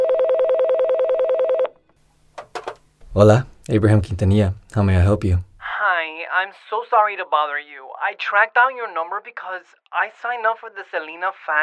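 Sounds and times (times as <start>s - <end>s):
telephone ringing with a fast electronic warble: 0.0s - 1.8s
speech: 3.2s - 5.5s, 6.4s - 11.6s.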